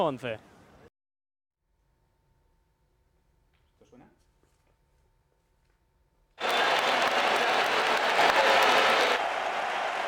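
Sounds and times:
large stadium crowd applauding: 6.4s - 10.0s.

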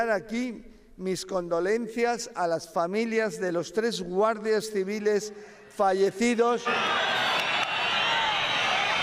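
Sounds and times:
speech: 0.0s - 7.1s
audience booing at minister Marlaska during a Guardia Civil ceremony: 6.6s - 9.0s.

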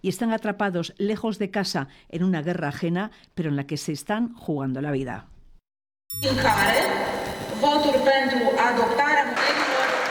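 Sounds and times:
speech: 0.0s - 5.3s, 6.2s - 9.6s
crowd applause in parliament: 9.4s - 10.0s.

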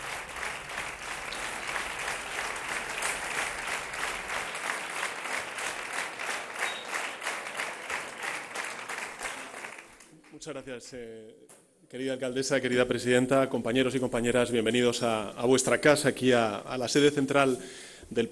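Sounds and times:
large crowd applauding in a sustained ovation: 0.0s - 10.1s
speech: 10.4s - 18.2s.

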